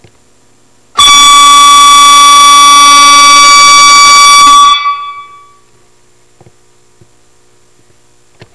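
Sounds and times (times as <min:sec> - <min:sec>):
victory horn: 0:01.0 - 0:05.6.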